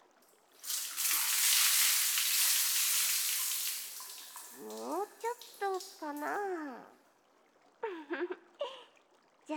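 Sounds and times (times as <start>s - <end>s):
water poured to rinse away foam: 0.2s - 6.5s
speech: 4.6s - 6.4s.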